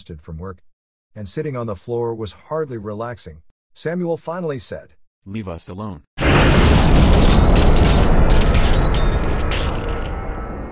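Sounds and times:
speech: 0.0 - 6.7
thundering crash of something hitting ground: 6.2 - 10.7.

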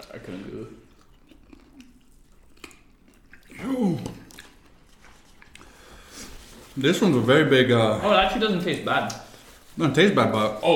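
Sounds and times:
speech: 0.0 - 0.9, 6.8 - 9.2, 9.8 - 10.7
person chewing chicken wings: 0.0 - 6.8.

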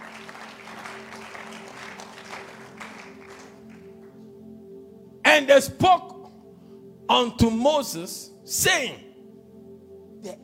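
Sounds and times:
crowd audience clapping: 0.0 - 4.3
speech: 5.4 - 6.1, 7.1 - 9.0.

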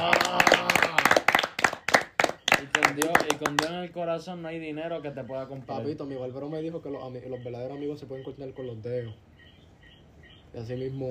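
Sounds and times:
people clapping: 0.0 - 3.9
speech: 3.0 - 9.3, 10.6 - 11.0.

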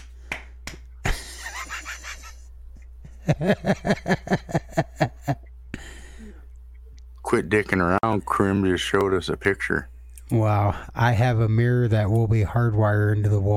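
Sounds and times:
hand slaps on a bare belly: 0.0 - 1.2
laughter: 1.0 - 5.5
speech: 3.3 - 4.9, 7.3 - 13.5.

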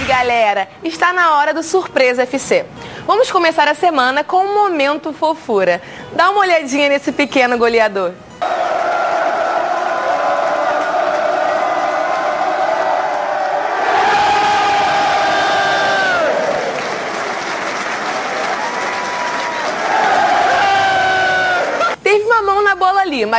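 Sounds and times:
speech: 0.2 - 8.6, 23.2 - 23.3
football crowd roaring: 8.4 - 22.0.

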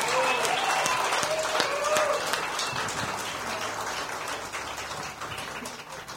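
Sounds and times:
whoops and high calls: 0.0 - 2.4
crowd applauding: 0.0 - 6.1.

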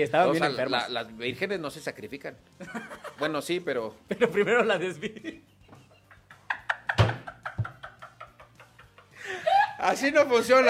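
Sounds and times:
speech: 0.0 - 5.5, 9.3 - 10.6
lively conversation among friends: 0.0 - 10.6
laughter: 2.6 - 3.4, 4.1 - 10.6
rapid banging on a table picked up by microphones: 6.9 - 7.8.

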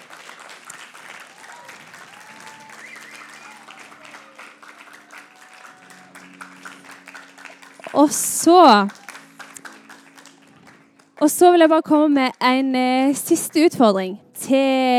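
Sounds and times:
audience applause: 0.0 - 12.4
speech: 8.0 - 9.0, 11.2 - 14.9.

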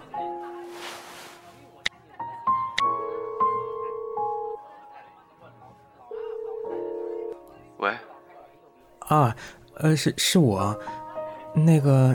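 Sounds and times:
telephone ringing tone: 2.9 - 4.6, 6.1 - 7.4
speech: 9.1 - 11.0, 11.6 - 12.1.

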